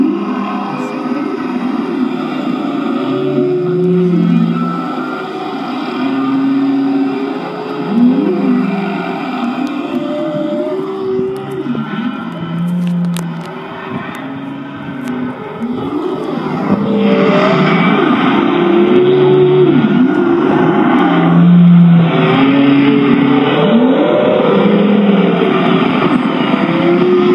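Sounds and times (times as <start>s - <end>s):
humpback whale song: 0.0s - 27.3s.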